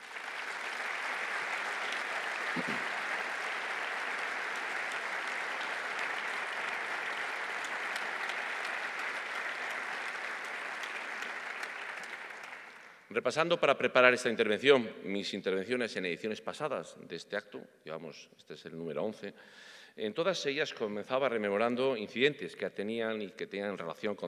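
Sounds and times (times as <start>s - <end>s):
audience applause: 0.0s - 13.1s
speech: 2.6s - 2.9s, 13.2s - 24.2s.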